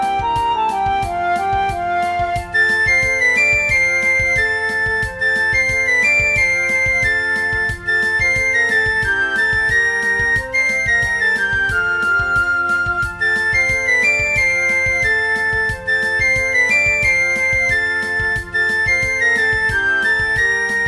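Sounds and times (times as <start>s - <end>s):
piccolo practice track: 0.0s - 20.8s.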